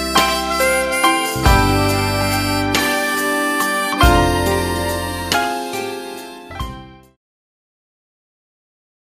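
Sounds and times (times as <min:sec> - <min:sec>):
western blues music: 0:00.0 - 0:07.2.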